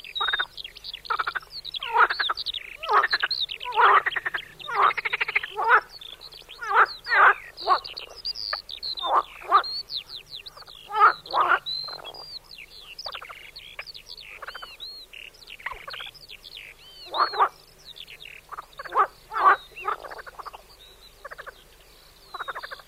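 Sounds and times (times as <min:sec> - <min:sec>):
marsh frog croaking in pulsed rattling bursts: 0:00.2 - 0:00.5, 0:01.1 - 0:06.0, 0:06.6 - 0:09.7, 0:10.5 - 0:12.2, 0:17.0 - 0:17.6, 0:18.3 - 0:20.6, 0:21.2 - 0:21.6, 0:22.3 - 0:22.8.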